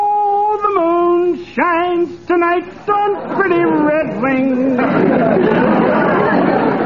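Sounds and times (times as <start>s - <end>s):
man singing in a bathtub: 0.0s - 5.0s
laughter: 0.5s - 6.8s
speech: 1.6s - 6.0s.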